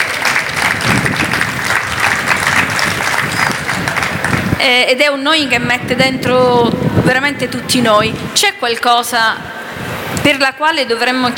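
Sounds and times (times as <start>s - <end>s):
applause: 0.0s - 4.6s
speech: 4.6s - 9.6s, 10.3s - 11.3s.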